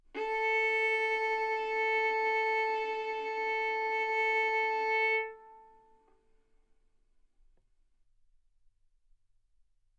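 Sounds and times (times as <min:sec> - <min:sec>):
violin bowed arco notes: 0:00.0 - 0:06.1.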